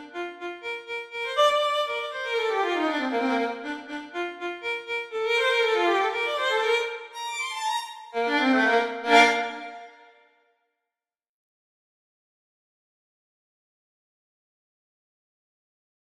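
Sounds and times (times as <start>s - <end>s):
violin solo: 0.0s - 10.1s.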